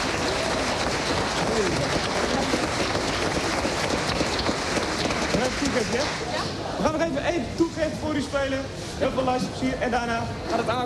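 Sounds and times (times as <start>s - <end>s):
audience applause: 0.0s - 6.4s
speech: 5.8s - 10.8s.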